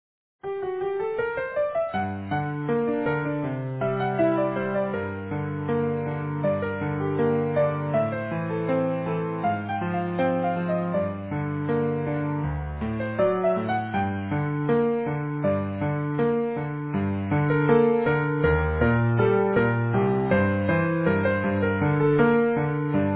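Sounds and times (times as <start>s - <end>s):
easy piano: 0.4s - 23.1s.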